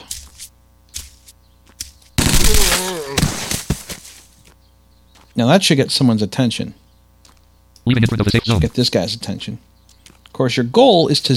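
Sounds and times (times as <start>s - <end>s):
MP5 submachine gun burst fire in a video game: 2.2s - 3.7s
speech: 5.4s - 6.8s, 7.9s - 9.7s, 10.4s - 11.3s.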